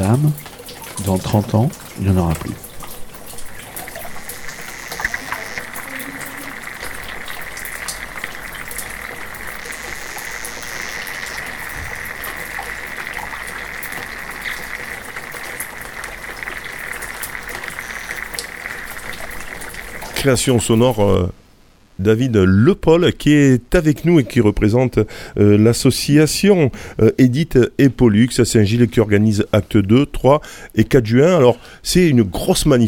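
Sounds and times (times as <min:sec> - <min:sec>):
flowing water: 0:00.0 - 0:21.2
speech: 0:00.1 - 0:02.6, 0:20.2 - 0:21.4, 0:22.0 - 0:32.8.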